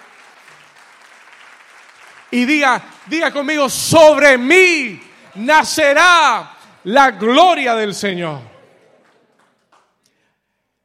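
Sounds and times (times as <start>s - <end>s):
audience applauding: 0.0s - 10.1s
speech: 2.3s - 8.5s.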